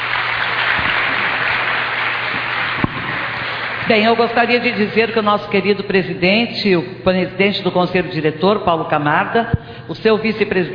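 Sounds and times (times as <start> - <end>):
audience applause: 0.0 - 3.9
speech: 3.9 - 10.7.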